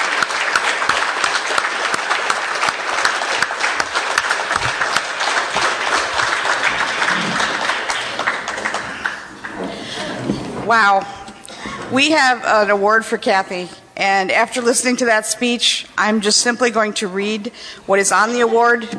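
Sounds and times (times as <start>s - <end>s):
large standing audience clapping after a banquet speech: 0.0s - 10.5s
speech: 10.7s - 11.2s, 11.9s - 18.9s.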